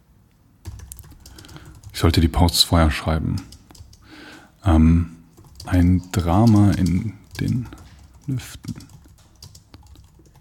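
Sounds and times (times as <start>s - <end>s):
computer mouse clicking: 0.6s - 2.0s, 5.3s - 10.3s
speech: 2.0s - 3.5s, 4.6s - 9.0s.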